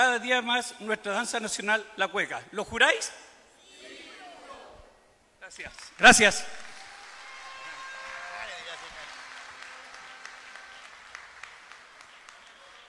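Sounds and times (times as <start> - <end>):
speech: 0.0 - 3.3, 5.5 - 6.6
audience applause: 5.8 - 12.8.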